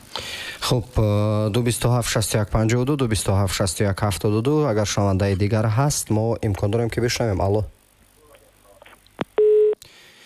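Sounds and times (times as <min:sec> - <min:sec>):
faint hiss: 0:00.0 - 0:10.2
speech: 0:00.7 - 0:07.8
telephone busy-tone beep after the caller hung up: 0:09.4 - 0:09.8.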